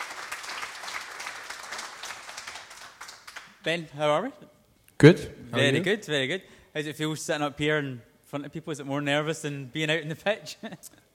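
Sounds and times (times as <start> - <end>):
audience applause: 0.0 - 3.5
speech: 3.6 - 11.0.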